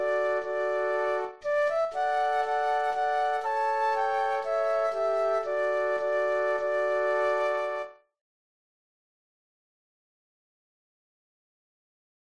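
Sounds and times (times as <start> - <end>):
flute trio playing: 0.0 - 8.0.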